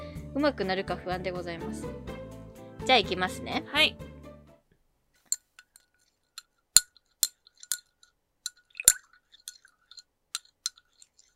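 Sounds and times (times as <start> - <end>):
speech: 0.4 - 2.2, 2.8 - 4.1
spoon stirring milk in a ceramic cup: 5.3 - 11.3
spoon clinking on ceramic cup rim: 6.8 - 11.3.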